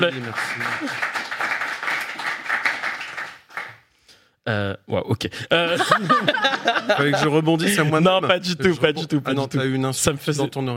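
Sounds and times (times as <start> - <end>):
speech: 0.0 - 1.5, 4.5 - 10.7
studio audience applause: 0.0 - 3.8
laughter: 5.5 - 9.2.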